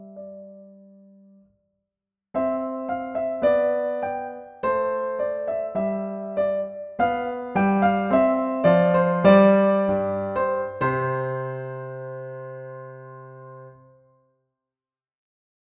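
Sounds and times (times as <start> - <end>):
piano playing a gavotte with modified velocities and pedaling: 2.4 - 13.8.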